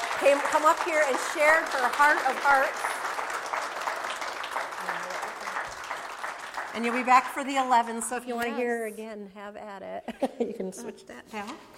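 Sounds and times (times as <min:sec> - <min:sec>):
audience applause: 0:00.0 - 0:08.0
speech: 0:00.2 - 0:03.0, 0:06.8 - 0:11.7.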